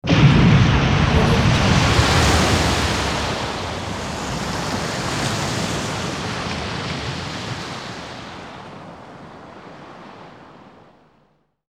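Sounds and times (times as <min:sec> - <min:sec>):
monster rising from the ocean: 0:01.0 - 0:06.9.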